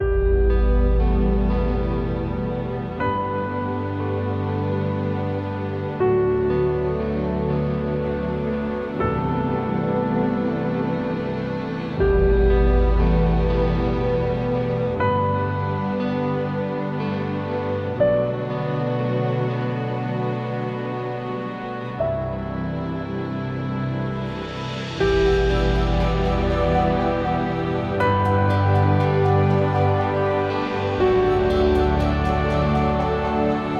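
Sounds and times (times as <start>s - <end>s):
ambient music: 0.0s - 33.7s.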